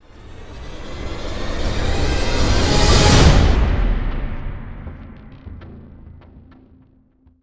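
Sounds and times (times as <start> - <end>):
swell: 0.0 - 6.3.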